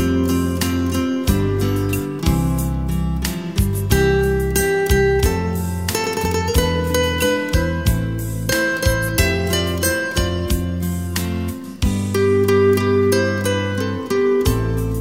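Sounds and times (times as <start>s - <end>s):
romantic guitar music: 0.0s - 14.9s.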